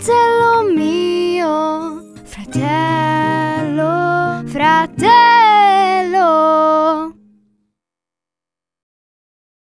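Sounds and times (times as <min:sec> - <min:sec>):
singing sample: 0:00.0 - 0:07.2.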